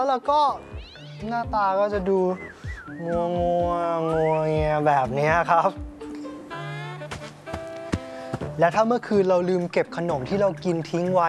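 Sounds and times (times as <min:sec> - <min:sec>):
speech: 0:00.0 - 0:05.9, 0:08.6 - 0:11.2
cat yowling and meowing: 0:00.6 - 0:01.5.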